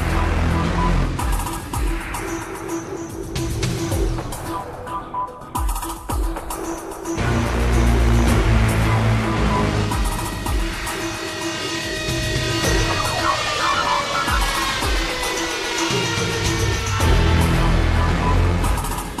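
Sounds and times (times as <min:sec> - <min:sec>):
synthesizer monster theme from a film score: 0:00.0 - 0:19.1.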